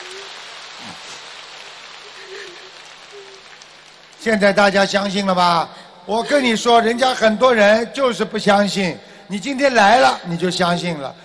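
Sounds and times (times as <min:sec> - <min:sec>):
applause: 0:00.0 - 0:05.4
speech: 0:04.2 - 0:11.2.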